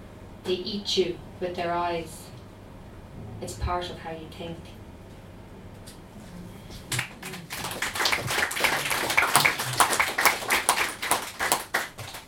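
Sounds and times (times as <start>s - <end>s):
speech: 0.5s - 2.3s, 3.4s - 4.8s
audience clapping: 6.7s - 12.2s.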